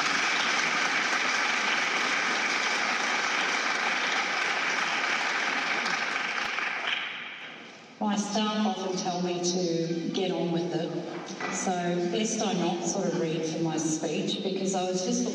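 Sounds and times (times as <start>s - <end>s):
audience applause: 0.0s - 7.2s
speech: 8.2s - 15.3s.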